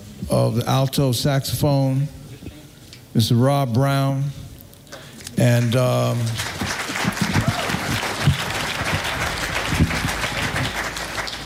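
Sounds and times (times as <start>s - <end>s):
speech: 0.3s - 2.2s, 3.2s - 4.4s, 5.4s - 6.5s
audience applause at a live jazz performance: 6.0s - 11.4s.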